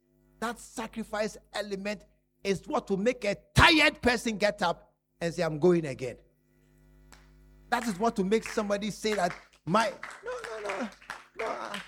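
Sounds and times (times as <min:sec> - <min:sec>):
speech: 0:00.4 - 0:06.2, 0:07.7 - 0:11.8
tired, weak clapping from an audience: 0:07.1 - 0:11.8.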